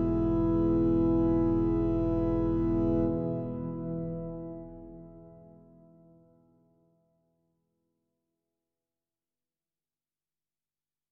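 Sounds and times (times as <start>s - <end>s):
organ background drone: 0.0s - 6.4s.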